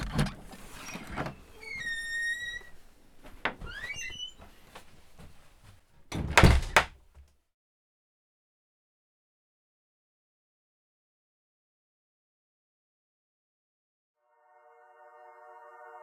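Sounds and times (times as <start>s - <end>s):
door squeaking and creaking: 0.1s - 2.8s, 3.5s - 4.5s, 6.1s - 7.0s
door knocking thuds: 6.1s - 7.0s.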